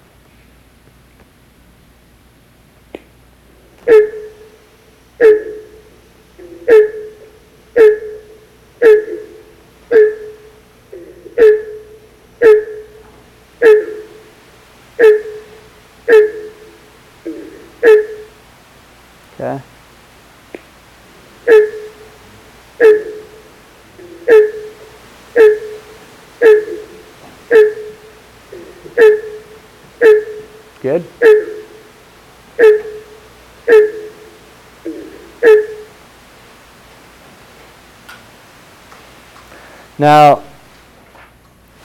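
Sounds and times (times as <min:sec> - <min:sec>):
steady raspy honking diagnostic call: 0:03.9 - 0:04.5, 0:05.2 - 0:13.0, 0:13.6 - 0:14.4, 0:15.0 - 0:18.4, 0:21.2 - 0:32.0, 0:32.6 - 0:36.0
speech: 0:30.8 - 0:31.1, 0:40.0 - 0:40.4.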